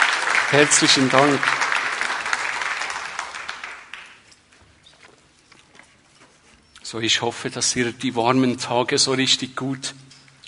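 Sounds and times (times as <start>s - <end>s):
audience applauding: 0.0s - 4.4s
speech: 0.5s - 1.7s, 6.9s - 10.0s.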